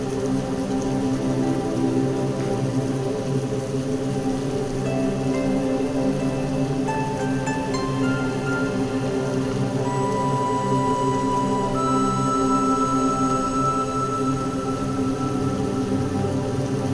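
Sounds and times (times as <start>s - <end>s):
morning rain: 0.0s - 16.9s.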